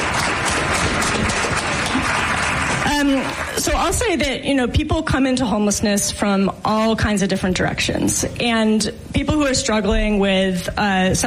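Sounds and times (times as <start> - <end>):
audience applause: 0.0 - 3.8
speech: 3.0 - 11.2.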